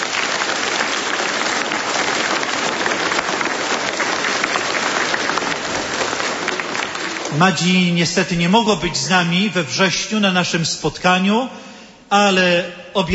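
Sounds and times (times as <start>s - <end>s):
audience applause: 0.0s - 8.6s
speech: 7.3s - 13.1s.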